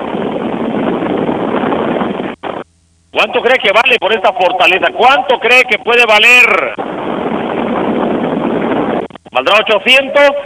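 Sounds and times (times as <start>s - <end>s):
powerful electric fan blowing: 0.0s - 10.4s
speech: 3.2s - 6.8s, 9.4s - 10.4s.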